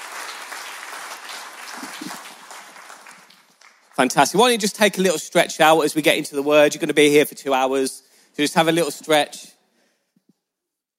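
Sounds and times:
audience applauding: 0:00.0 - 0:04.4
speech: 0:04.0 - 0:09.5.

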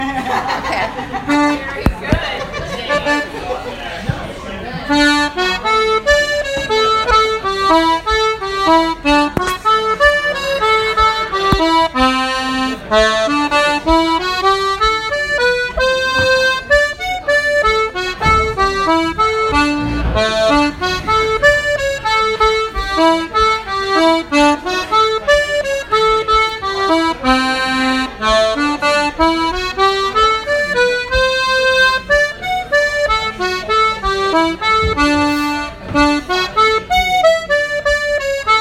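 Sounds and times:
laughter: 0:00.0 - 0:03.8
jig tune: 0:04.9 - 0:38.6.

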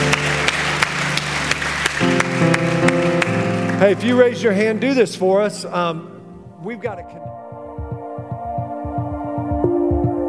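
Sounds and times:
crowd clapping: 0:00.0 - 0:04.9
sustained musical tone: 0:00.0 - 0:10.2
speech: 0:03.8 - 0:07.4.

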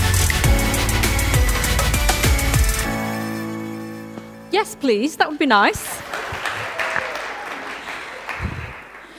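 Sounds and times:
crowd applauding: 0:00.1 - 0:02.9, 0:05.7 - 0:09.1
speech: 0:04.6 - 0:06.1.

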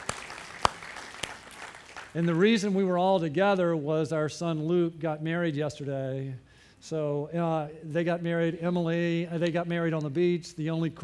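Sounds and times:
sparse audience hand claps: 0:00.0 - 0:02.8
speech: 0:02.1 - 0:11.0.

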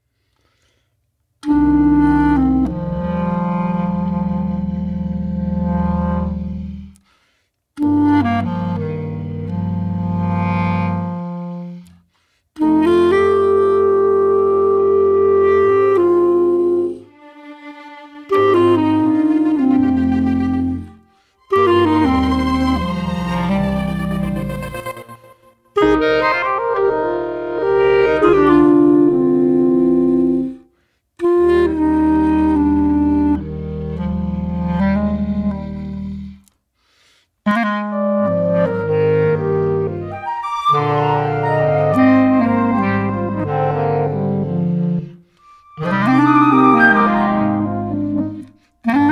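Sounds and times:
clarinet: 0:01.4 - 0:49.1
vocoder: 0:23.8 - 0:26.2.

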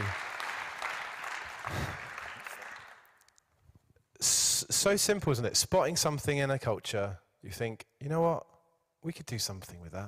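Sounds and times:
round of applause: 0:00.0 - 0:03.3
speech: 0:04.7 - 0:10.0.

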